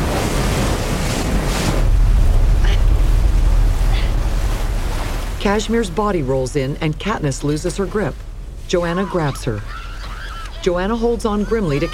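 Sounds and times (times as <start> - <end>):
churning water roaring: 0.0 - 11.9
speech: 5.4 - 9.8, 10.6 - 11.9.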